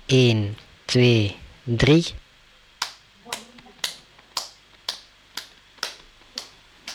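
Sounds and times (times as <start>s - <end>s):
speech: 0.1s - 2.2s
group hand clapping: 2.7s - 6.9s.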